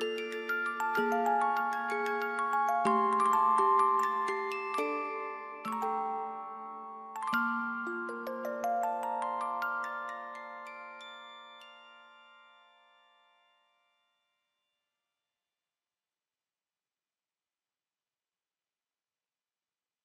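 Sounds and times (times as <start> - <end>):
music box melody: 0.0 - 14.0.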